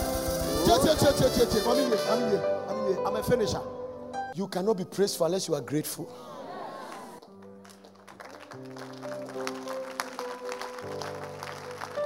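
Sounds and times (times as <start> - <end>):
keyboard or organ chords: 0.0 - 4.4
speech: 0.7 - 3.8, 4.4 - 6.4
audience clapping: 6.8 - 12.0.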